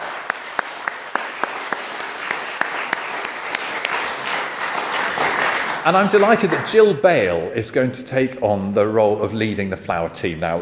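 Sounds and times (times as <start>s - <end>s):
audience applause: 0.0s - 7.0s
speech: 5.8s - 10.6s.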